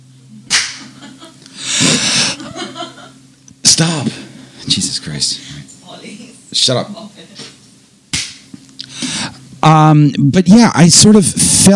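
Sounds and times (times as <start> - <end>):
hand clap as an editing marker: 0.5 - 0.9, 8.1 - 8.5
laughter: 0.8 - 3.2
speech: 3.8 - 7.1, 9.6 - 11.7.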